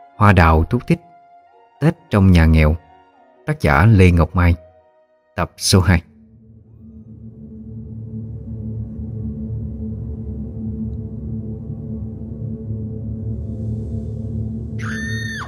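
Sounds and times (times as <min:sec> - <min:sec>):
speech: 0:00.2 - 0:01.1, 0:01.8 - 0:02.8, 0:03.5 - 0:04.6, 0:05.4 - 0:06.1
piercing scream in the night: 0:14.8 - 0:15.4.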